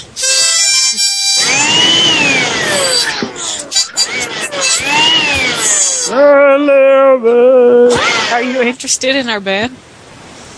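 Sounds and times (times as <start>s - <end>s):
harmonica: 0.0s - 6.5s
vacuum cleaner: 1.3s - 6.1s
speech: 6.1s - 9.9s.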